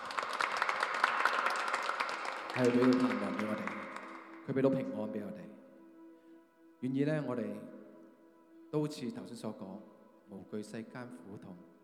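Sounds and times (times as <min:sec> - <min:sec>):
applause at a church gathering: 0:00.0 - 0:04.5
speech: 0:02.6 - 0:03.8, 0:04.5 - 0:05.6, 0:06.8 - 0:07.7, 0:08.7 - 0:11.7.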